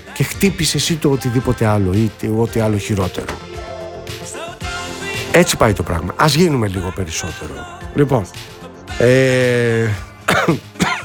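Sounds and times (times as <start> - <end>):
speech: 0.4 - 3.5, 5.3 - 10.7
person coughing: 10.3 - 11.0.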